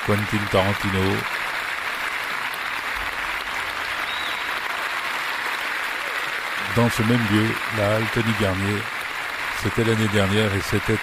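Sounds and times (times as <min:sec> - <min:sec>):
speech: 0:00.0 - 0:01.4, 0:06.8 - 0:09.0, 0:09.6 - 0:11.0
standing ovation applause from audience: 0:00.0 - 0:11.0.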